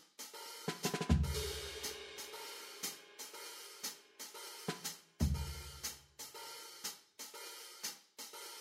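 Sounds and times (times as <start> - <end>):
all black keys pattern accompaniment: 0.7 - 5.9.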